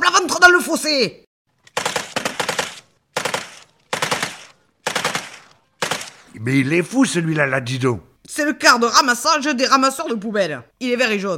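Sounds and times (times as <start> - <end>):
speech: 0.7 - 1.3, 6.4 - 11.3
gunfire: 1.6 - 6.4.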